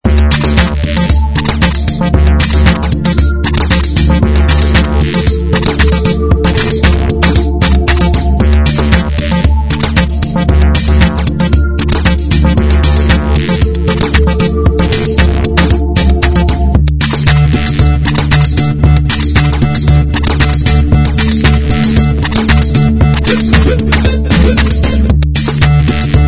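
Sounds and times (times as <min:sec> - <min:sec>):
royalty free music: 0:00.0 - 0:26.2.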